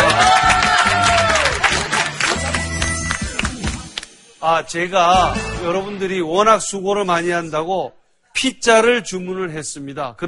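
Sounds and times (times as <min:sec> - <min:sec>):
excited voices and cheers: 0:00.0 - 0:02.5
audience applause: 0:00.0 - 0:03.8
speech: 0:04.4 - 0:10.2.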